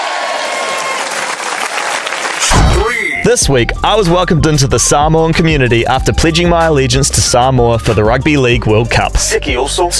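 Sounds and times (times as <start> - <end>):
audience applauding: 0.0 - 3.1
speech: 3.3 - 9.9.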